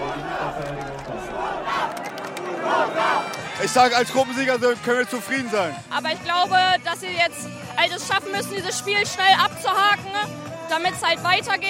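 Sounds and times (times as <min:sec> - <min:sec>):
crowd cheering in Hannover: 0:00.0 - 0:05.8
speech: 0:03.6 - 0:11.6.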